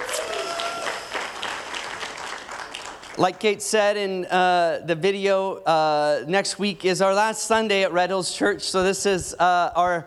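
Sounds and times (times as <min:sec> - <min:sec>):
audience applause at a church service: 0:00.0 - 0:03.2
speech: 0:03.2 - 0:10.0.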